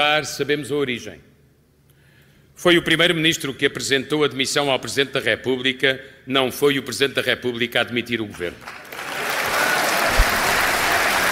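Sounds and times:
speech: 0.0 - 1.3, 2.6 - 9.0
audience applause in a congress hall auditorium: 8.6 - 11.2.

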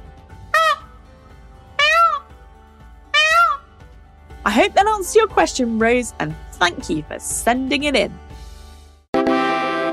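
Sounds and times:
Indian Peafowl call: 0.5 - 0.9, 1.8 - 2.3, 3.1 - 3.7
speech: 4.5 - 8.2.

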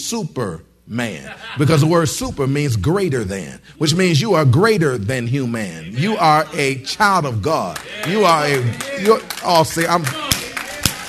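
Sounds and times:
man talking loudly: 0.0 - 10.4
speech: 0.1 - 10.3
laughter: 1.1 - 2.1
single person clapping hands: 7.8 - 11.0.

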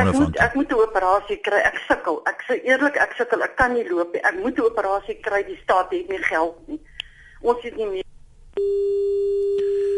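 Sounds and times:
speech: 0.0 - 8.9
telephone busy tone: 8.6 - 9.9.

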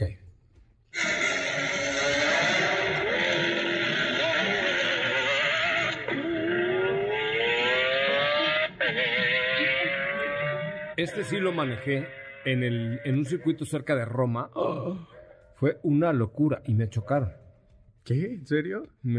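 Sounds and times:
V12 supercar engine revving through gear changes: 1.0 - 13.0
speech: 11.0 - 17.4, 18.0 - 19.1.

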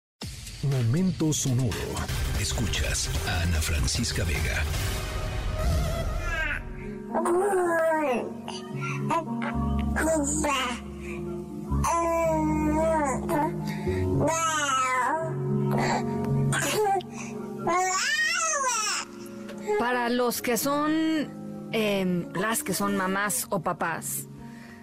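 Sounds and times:
speech: 0.6 - 5.2, 7.1 - 14.6, 19.8 - 24.3
baby babbling: 5.9 - 10.9, 11.7 - 13.6, 14.2 - 15.9, 16.5 - 19.1.

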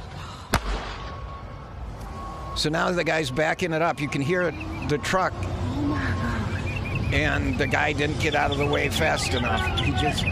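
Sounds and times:
gunshot: 0.5 - 1.2
speech: 2.6 - 6.2, 7.1 - 10.3.

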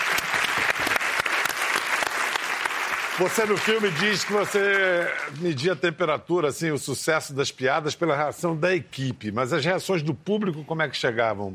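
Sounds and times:
audience applause: 0.0 - 5.6
speech: 3.2 - 11.5.

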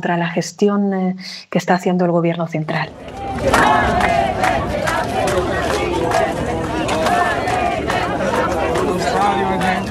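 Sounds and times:
speech: 0.0 - 6.2
crowd of protesters chanting at port: 2.9 - 9.8.

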